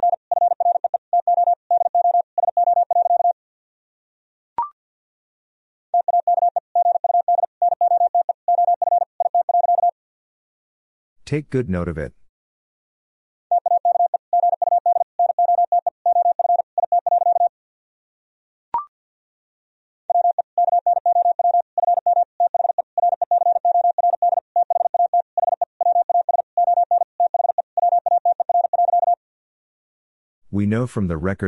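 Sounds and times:
Morse code tone at 50 words per minute: 0.0s - 3.4s, 6.0s - 10.0s, 13.5s - 17.5s, 20.1s - 29.2s
speech: 11.3s - 12.2s, 30.7s - 31.4s.

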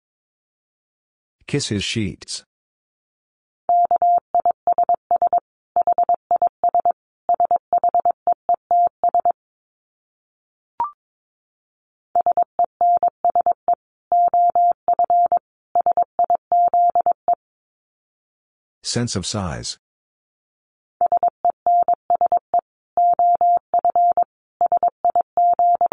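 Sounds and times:
speech: 1.5s - 2.5s, 18.9s - 19.8s
Morse code tones at 22 wpm: 3.7s - 9.4s, 12.2s - 17.2s, 21.0s - 25.9s.

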